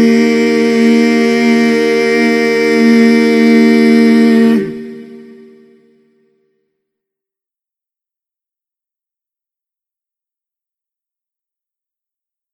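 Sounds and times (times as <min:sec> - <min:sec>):
national anthem on baritone in mono: 0:00.0 - 0:05.5.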